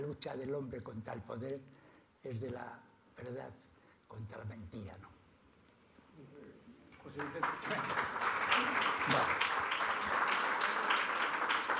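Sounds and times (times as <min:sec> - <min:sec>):
speech: 0:00.1 - 0:05.2, 0:06.2 - 0:09.6
audience applause: 0:07.2 - 0:11.7.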